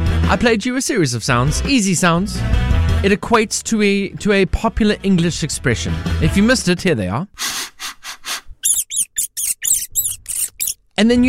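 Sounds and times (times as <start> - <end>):
speech: 0.3 - 7.5, 11.0 - 11.2
rat sniffing: 7.4 - 10.8
rat squeaking: 8.6 - 10.8.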